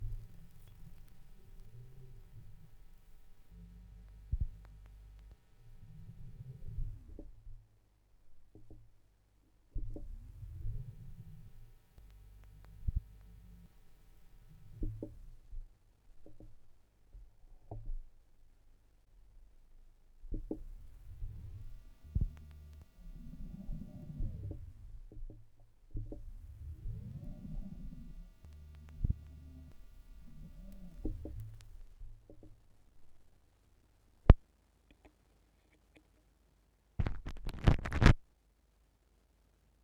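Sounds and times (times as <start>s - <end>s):
vinyl record crackle: 0.0s - 7.2s, 9.9s - 15.5s, 20.4s - 25.1s, 26.2s - 32.0s, 37.0s - 38.2s.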